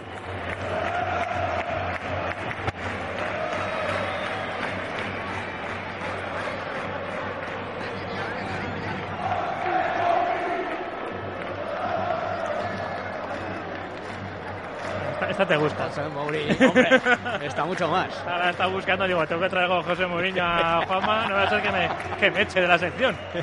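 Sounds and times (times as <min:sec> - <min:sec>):
huge stadium crowd chanting a football song: 0:00.0 - 0:15.8
speech: 0:15.4 - 0:23.4
laughter: 0:16.3 - 0:18.2, 0:20.3 - 0:23.4.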